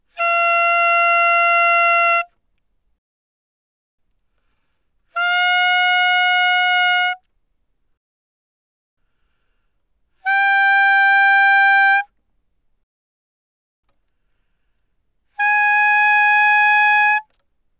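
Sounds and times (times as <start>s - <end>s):
bass clarinet playing fortissimo: 0.1s - 2.3s, 5.2s - 7.2s, 10.2s - 12.1s, 15.4s - 17.2s.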